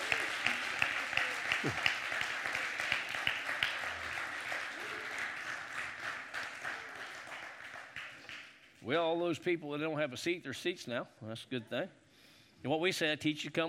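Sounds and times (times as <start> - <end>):
audience clapping hands in praise: 0.0 - 8.8
speech: 1.6 - 1.9, 8.8 - 12.0, 12.6 - 13.6.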